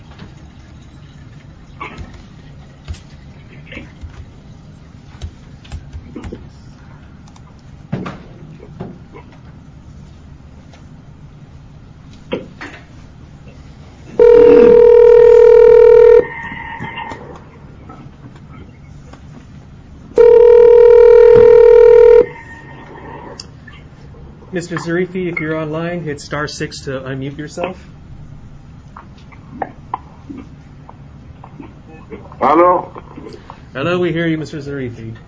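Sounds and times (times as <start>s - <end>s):
telephone ringback on a conference-line call: 14.2s - 16.3s, 20.2s - 22.4s
speech: 24.6s - 27.9s, 32.5s - 33.0s, 33.8s - 35.2s.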